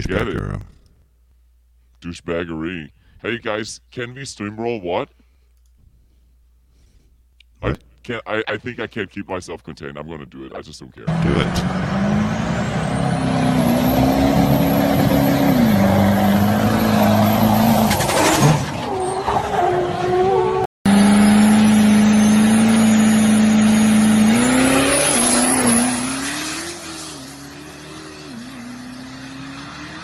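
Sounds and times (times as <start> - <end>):
speech: 0.0 - 0.8, 2.0 - 5.2, 7.6 - 12.4
fast car racing: 11.1 - 30.0.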